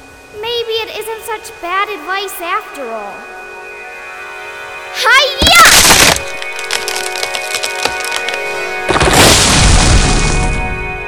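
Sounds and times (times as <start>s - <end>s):
speech: 0.3s - 3.4s
tree splintering into pieces: 5.4s - 10.7s.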